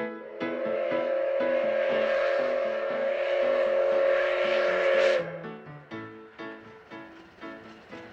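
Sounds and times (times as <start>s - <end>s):
steam locomotive whistle blast: 0.2s - 6.6s
steam locomotive C12 66 chuffing: 0.2s - 8.1s.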